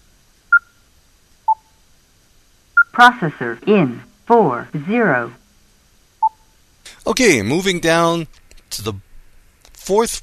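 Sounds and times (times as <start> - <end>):
short electronic beeps from a device: 0.5 - 0.8, 2.8 - 3.1, 6.2 - 6.5
speech: 3.0 - 5.4, 7.1 - 9.1, 9.9 - 10.2.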